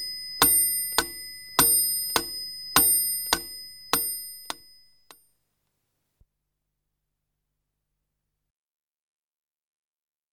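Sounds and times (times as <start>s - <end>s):
pendulum clock: 0.0s - 5.2s.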